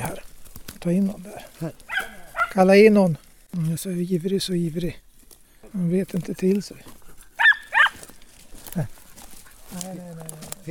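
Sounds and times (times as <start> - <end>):
speech: 0.2 - 1.9, 2.5 - 5.0, 5.7 - 7.0, 8.8 - 9.0
hunting dog baying: 1.9 - 2.6, 7.4 - 8.0.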